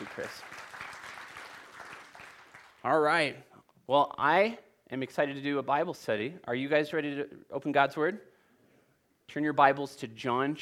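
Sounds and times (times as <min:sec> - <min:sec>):
church audience clapping: 0:00.0 - 0:03.2
speech: 0:00.2 - 0:00.6, 0:02.8 - 0:08.3, 0:09.3 - 0:10.5.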